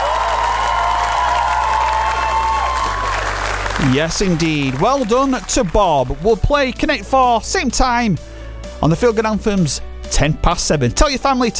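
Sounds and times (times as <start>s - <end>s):
round of applause: 0.0s - 6.5s
speech: 3.8s - 11.5s.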